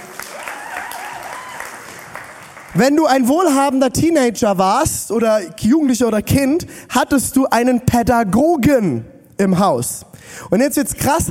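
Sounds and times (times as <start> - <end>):
audience applause: 0.0 - 2.8
speech: 2.8 - 11.2.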